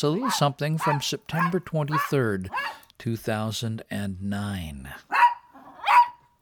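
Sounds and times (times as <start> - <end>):
speech: 0.0 - 5.3
dog barking: 0.2 - 2.8, 5.1 - 6.3.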